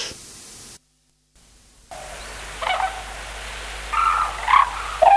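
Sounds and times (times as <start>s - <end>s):
white-naped crane loud harsh trumpeting calls: 1.9s - 5.1s.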